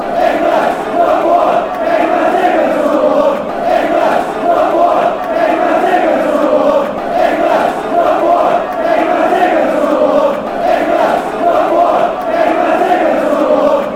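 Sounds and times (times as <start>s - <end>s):
football fans chanting: 0.0s - 13.9s.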